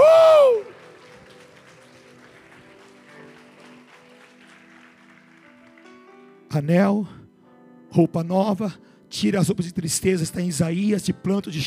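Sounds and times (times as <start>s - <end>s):
audience applauding: 0.0s - 6.3s
speech: 6.6s - 7.2s, 7.9s - 11.6s.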